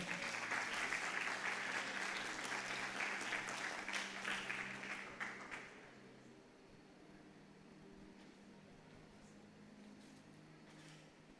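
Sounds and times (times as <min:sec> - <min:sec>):
audience applause: 0:00.0 - 0:05.9.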